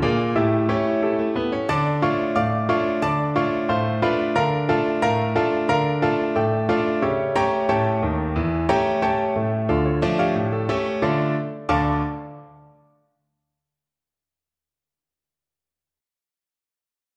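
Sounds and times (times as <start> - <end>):
piano piece: 0.0 - 13.0.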